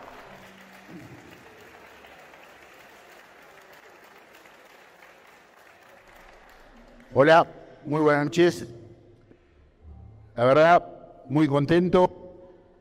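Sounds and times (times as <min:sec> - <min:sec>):
audience applause: 0:00.0 - 0:07.1
speech: 0:07.1 - 0:08.8, 0:10.4 - 0:12.2.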